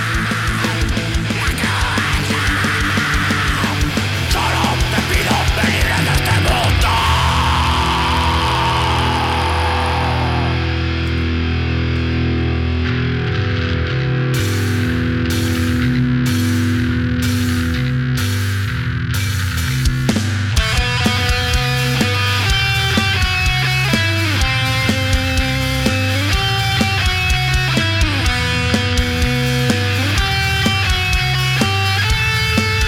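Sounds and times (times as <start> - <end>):
loud rock song with heavily distorted guitars: 0.0 - 32.8.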